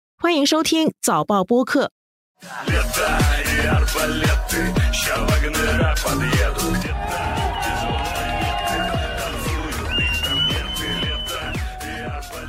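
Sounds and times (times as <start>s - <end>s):
speech: 0.2s - 7.4s
war song: 2.4s - 12.4s
crowd cheering: 2.5s - 12.4s.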